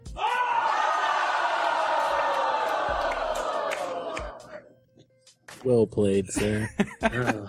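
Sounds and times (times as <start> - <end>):
studio audience booing and yelling in disapproval: 0.0 - 4.6
speech: 5.6 - 7.4
laughter: 6.4 - 7.4.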